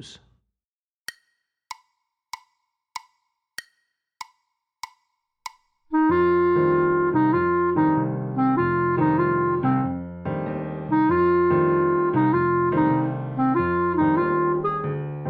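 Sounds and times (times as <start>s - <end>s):
jazz clarinet etude: 5.9s - 10.1s, 10.8s - 15.1s.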